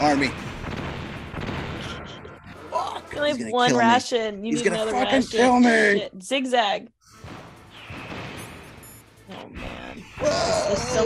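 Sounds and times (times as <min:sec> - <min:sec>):
speech: 0:00.0 - 0:00.5, 0:03.1 - 0:07.0, 0:10.7 - 0:11.0
missile explosions in the video game Metal Gear Solid Integral: 0:00.0 - 0:02.6, 0:07.2 - 0:10.2.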